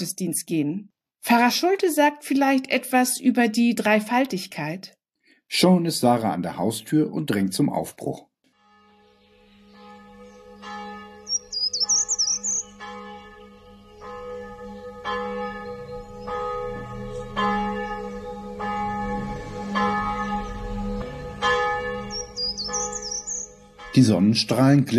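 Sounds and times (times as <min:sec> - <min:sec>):
speech: 0:00.0 - 0:08.3, 0:24.0 - 0:24.9
church bells ringing: 0:08.6 - 0:24.9.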